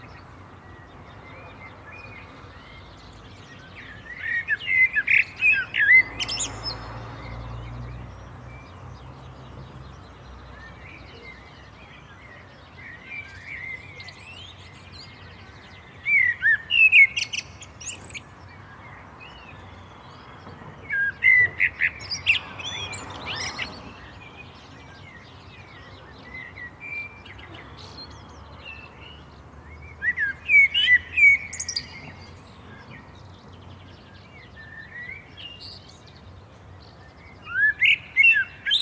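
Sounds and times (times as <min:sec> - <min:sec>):
bird chirps: 0:00.0 - 0:38.8
common blackbird singing: 0:00.0 - 0:38.8.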